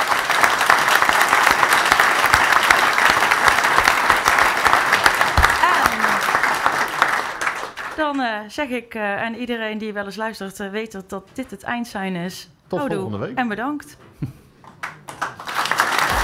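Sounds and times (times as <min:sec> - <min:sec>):
audience applause: 0:00.0 - 0:08.1, 0:14.7 - 0:16.2
speech: 0:08.1 - 0:14.4.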